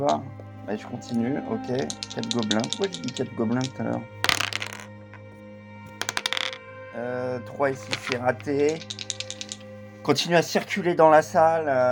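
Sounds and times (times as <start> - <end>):
speech: 0.0 - 4.2, 7.0 - 9.0, 10.0 - 11.9
dice being rolled: 1.1 - 5.2, 5.9 - 6.6, 7.8 - 9.7.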